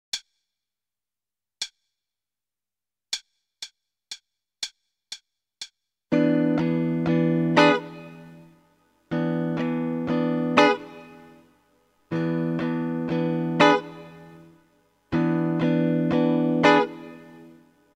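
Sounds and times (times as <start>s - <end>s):
starter guitar rhythm: 6.1s - 11.5s, 12.1s - 17.7s.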